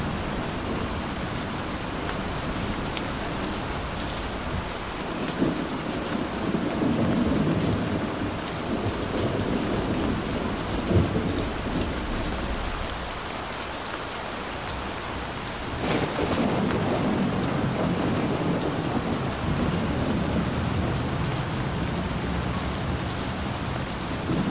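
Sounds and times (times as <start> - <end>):
gentle thunderstorm: 0.0 - 24.5.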